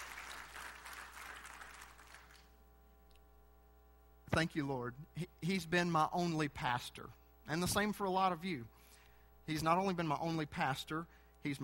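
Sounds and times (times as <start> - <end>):
audience applause: 0.0 - 2.6
speech: 4.4 - 8.9, 9.5 - 11.6.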